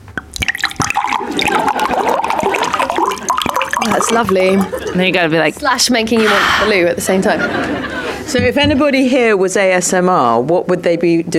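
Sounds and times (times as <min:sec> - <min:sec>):
clinks and drips: 0:00.0 - 0:05.7
water pouring from a bottle: 0:00.2 - 0:05.9
speech: 0:03.9 - 0:11.3
laughter: 0:06.2 - 0:08.6.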